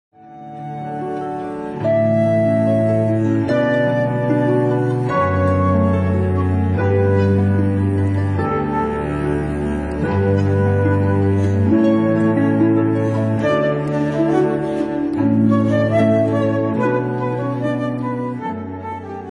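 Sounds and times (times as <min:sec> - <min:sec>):
harp: 0:00.2 - 0:19.3.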